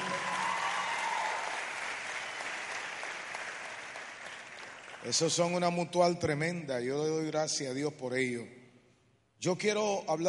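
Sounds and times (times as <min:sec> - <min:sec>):
audience applauding: 0:00.0 - 0:05.6
speech: 0:05.0 - 0:08.6, 0:09.4 - 0:10.2.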